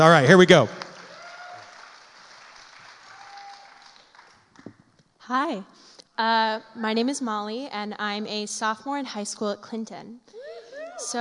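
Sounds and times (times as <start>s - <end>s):
speech: 0.0s - 0.8s, 5.3s - 11.1s
audience applause: 0.0s - 4.7s.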